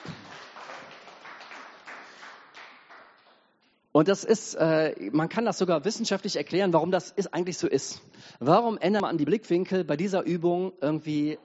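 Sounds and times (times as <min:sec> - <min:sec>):
audience applause for volunteers: 0:00.0 - 0:03.4
speech: 0:04.0 - 0:11.4.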